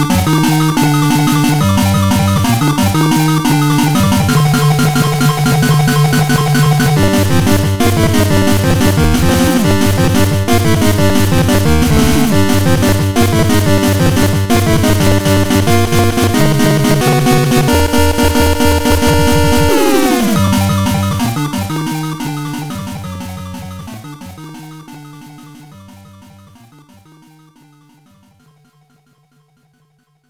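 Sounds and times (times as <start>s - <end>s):
boss fight music: 0.0s - 22.1s.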